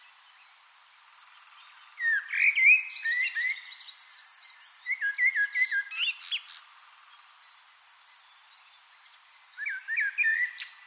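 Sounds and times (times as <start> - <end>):
common blackbird Turdus merula singing a varied warbling song: 1.6 - 6.6, 9.6 - 10.8.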